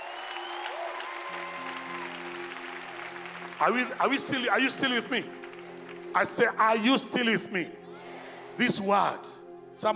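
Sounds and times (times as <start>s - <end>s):
audience clapping: 0.0s - 6.8s
speech: 3.6s - 5.4s, 6.1s - 7.8s, 8.6s - 9.9s.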